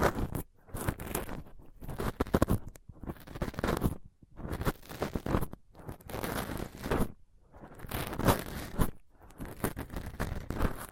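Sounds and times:
microphone scratched with a dental pick, tweezers and a cotton swab: 0.0s - 10.9s.

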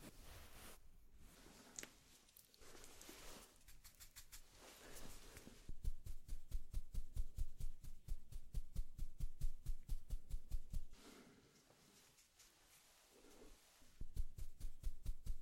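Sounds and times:
makeup brush strokes swishing: 0.0s - 15.3s.

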